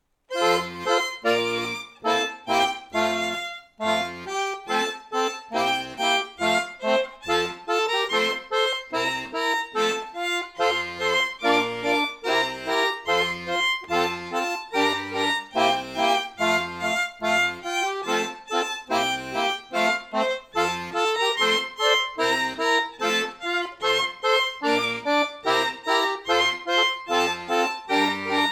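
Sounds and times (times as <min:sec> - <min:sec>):
backing track music: 0:00.3 - 0:28.4.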